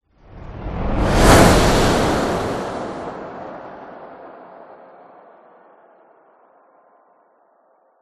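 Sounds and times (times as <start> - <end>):
whoosh: 0.2 - 4.6.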